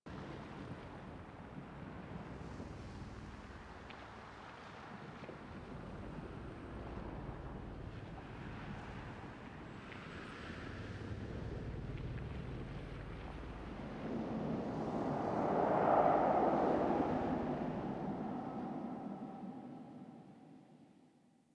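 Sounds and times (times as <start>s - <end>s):
throne room ambient intro music: 11.1s - 20.8s.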